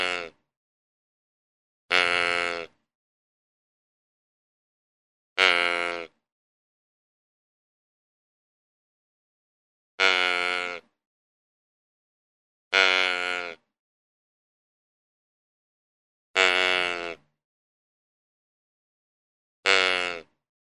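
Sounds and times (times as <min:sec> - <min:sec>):
deer giving nasal bleats: 0:00.0 - 0:00.4, 0:01.9 - 0:02.8, 0:05.4 - 0:06.2, 0:10.0 - 0:10.9, 0:12.7 - 0:13.7, 0:16.4 - 0:17.3, 0:19.6 - 0:20.4.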